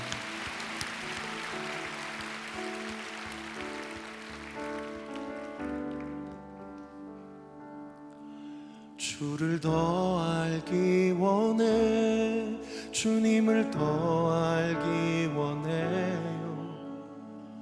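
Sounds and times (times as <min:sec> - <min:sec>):
audience applause: 0:00.0 - 0:06.6
speech: 0:09.2 - 0:12.3, 0:13.0 - 0:16.2.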